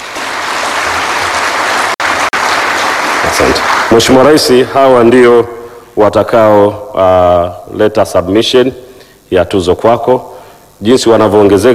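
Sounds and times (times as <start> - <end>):
audience applause at an awards gathering: 0.0 - 4.3
speech: 3.3 - 11.7.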